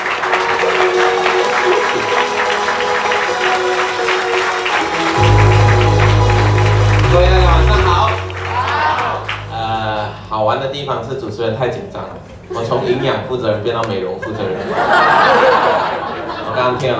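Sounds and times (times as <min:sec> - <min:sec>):
audience applause: 0:00.0 - 0:10.3
speech: 0:10.6 - 0:15.5, 0:16.6 - 0:16.9
laughter: 0:14.2 - 0:16.9.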